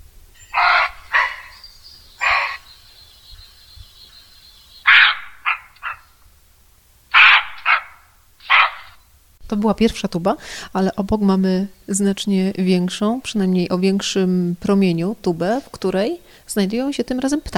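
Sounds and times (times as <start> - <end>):
roe deer buck barking: 0.4 - 6.2, 7.1 - 9.0
speech: 9.5 - 17.5.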